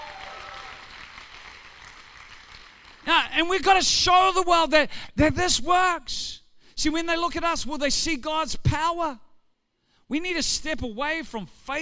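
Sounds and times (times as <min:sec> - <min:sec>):
crowd clapping: 0:00.0 - 0:03.1
speech: 0:03.1 - 0:09.2, 0:10.1 - 0:11.8.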